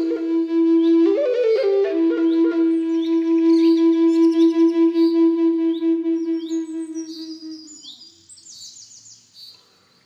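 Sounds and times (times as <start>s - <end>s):
Lakota flute in the key of F: 0.0s - 7.9s.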